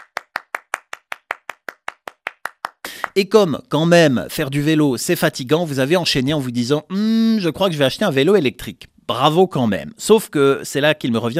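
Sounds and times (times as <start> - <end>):
audience clapping: 0.0 - 3.2
speech: 3.2 - 11.3.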